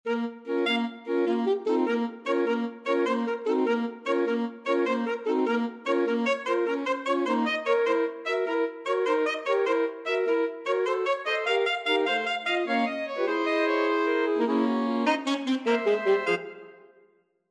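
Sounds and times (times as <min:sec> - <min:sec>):
alto saxophone quartet: 0:00.1 - 0:16.8.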